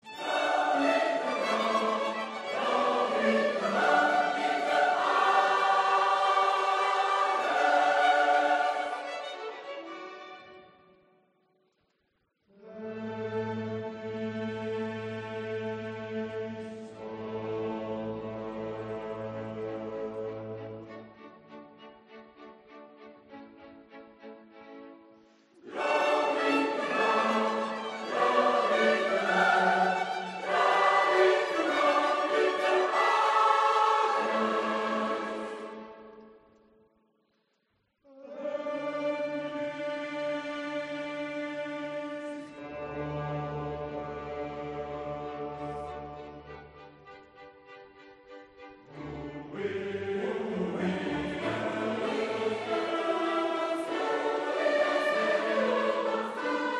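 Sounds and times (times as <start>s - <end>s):
choir singing: 0.0s - 10.9s, 12.6s - 24.3s, 25.3s - 36.7s, 38.0s - 56.7s.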